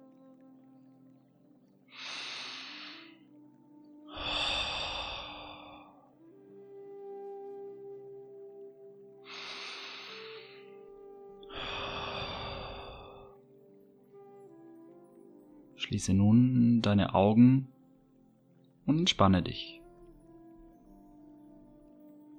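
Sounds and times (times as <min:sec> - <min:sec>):
soft steady tone: 0:00.0 - 0:22.3
slow deep breathing in through the nose, out through the mouth: 0:01.9 - 0:03.2, 0:04.1 - 0:06.2, 0:09.3 - 0:10.8, 0:11.4 - 0:13.4
speech: 0:15.9 - 0:17.7, 0:18.9 - 0:19.8.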